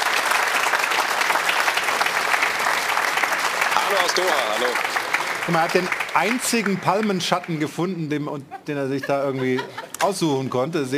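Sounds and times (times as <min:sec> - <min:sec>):
applause: 0:00.0 - 0:07.8
speech: 0:03.9 - 0:10.9
laughter: 0:08.4 - 0:10.7.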